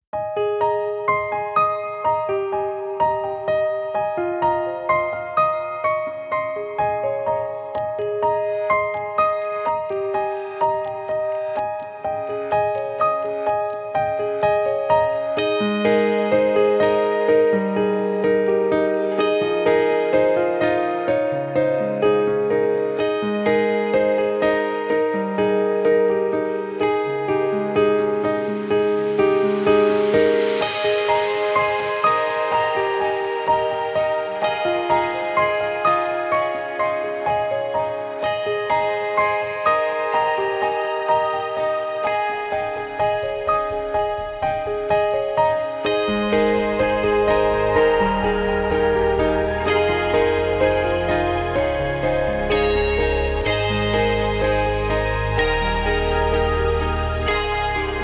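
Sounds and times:
beautiful easy inspirational instrumental music: 0.2 - 58.0.

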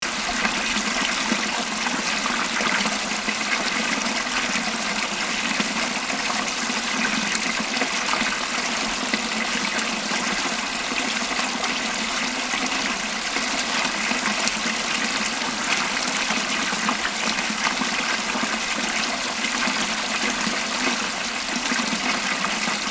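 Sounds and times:
mini cascade: 0.0 - 22.8.

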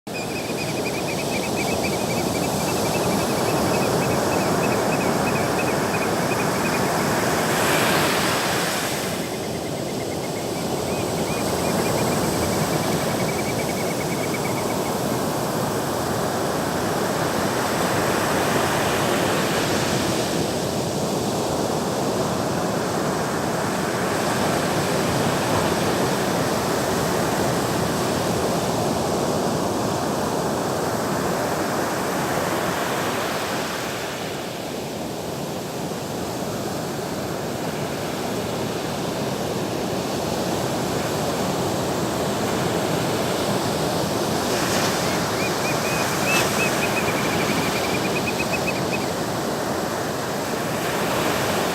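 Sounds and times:
sea waves: 0.1 - 51.7.

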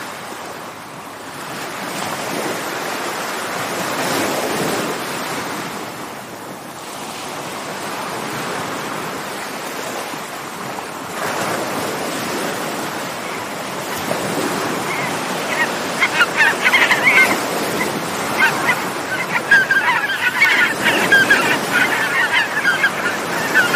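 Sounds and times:
sea: 0.0 - 23.7
birds: 13.2 - 23.7.

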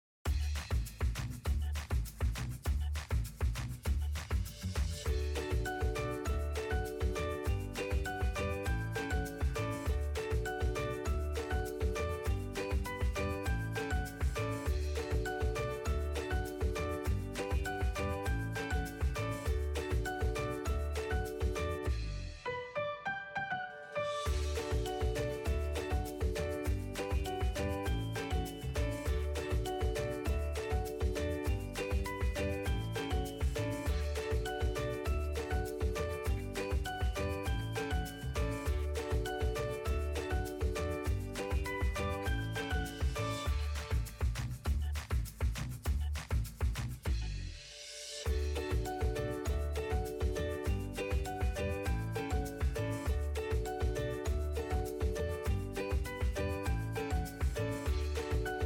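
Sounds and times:
happy upbeat instrumental children's music: 0.3 - 58.6.

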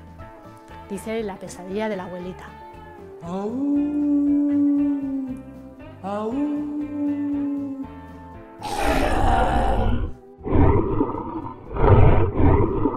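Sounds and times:
speech: 0.9 - 2.6, 3.2 - 4.6, 6.0 - 7.3
deep raspy monster roar and snarling growls: 8.6 - 12.9
sustained tonal hum: 9.6 - 12.9.

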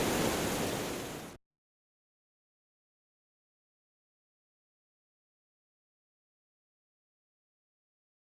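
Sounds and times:
dam exterior: 0.0 - 1.4.

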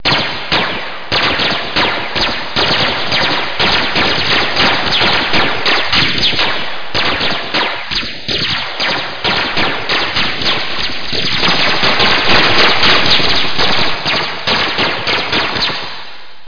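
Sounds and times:
gunshots: 0.0 - 16.2.

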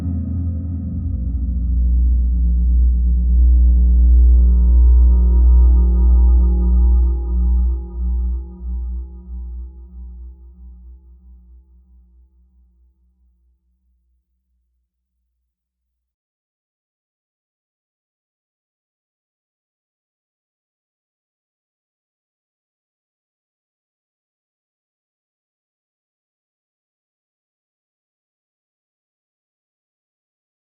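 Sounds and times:
instrumental ambient horror suspense music: 0.0 - 11.2.

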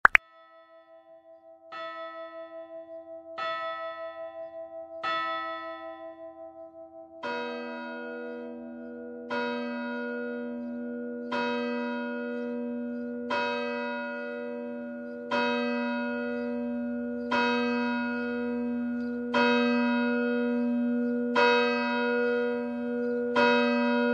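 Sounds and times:
church bells: 0.2 - 24.1.

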